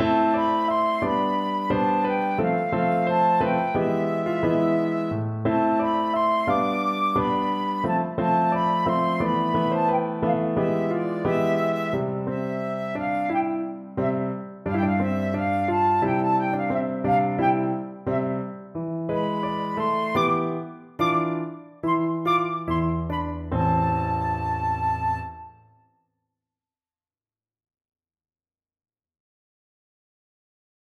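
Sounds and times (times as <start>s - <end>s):
descant recorder playing molto moderato: 0.1s - 14.2s, 14.7s - 18.3s, 19.1s - 25.8s.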